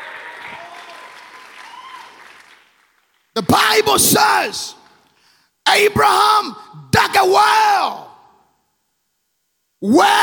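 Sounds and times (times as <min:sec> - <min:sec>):
audience clapping: 0:00.0 - 0:03.4
speech: 0:03.4 - 0:04.8, 0:05.7 - 0:08.1, 0:09.8 - 0:10.2.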